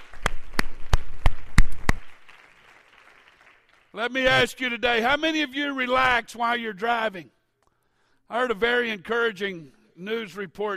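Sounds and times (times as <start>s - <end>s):
audience clapping: 0.0s - 4.5s
speech: 3.9s - 7.4s, 8.3s - 10.7s.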